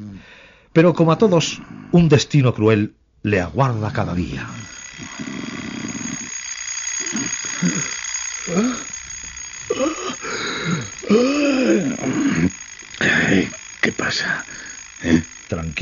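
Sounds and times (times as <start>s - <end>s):
speech: 0.2s - 5.3s, 7.6s - 8.9s, 13.9s - 15.8s
alarm clock going off: 3.7s - 15.8s.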